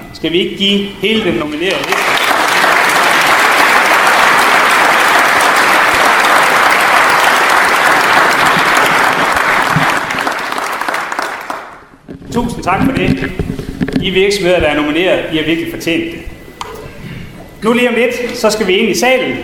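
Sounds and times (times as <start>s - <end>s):
speech: 0.1s - 2.2s, 12.4s - 16.3s, 17.6s - 19.4s
big round of applause in the foyer: 1.8s - 11.9s.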